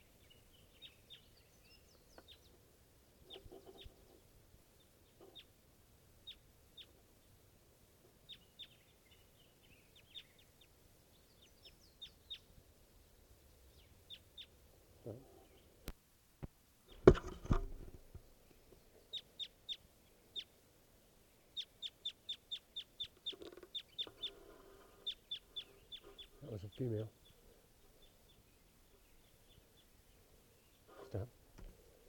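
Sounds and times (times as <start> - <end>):
wild bird chirping: 0.0 - 5.6, 6.2 - 7.4, 8.2 - 15.8, 18.2 - 32.0
thump and rustle: 16.4 - 18.2, 31.5 - 31.8
speech: 26.8 - 27.2.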